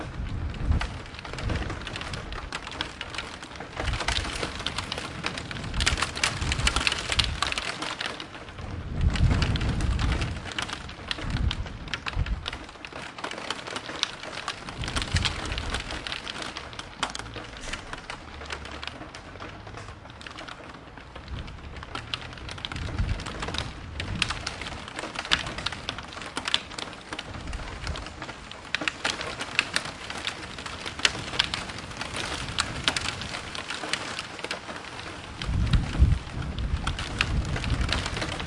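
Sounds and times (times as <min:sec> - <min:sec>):
thunder: 0:00.0 - 0:13.0, 0:13.8 - 0:38.4
rain in a city: 0:00.0 - 0:38.4.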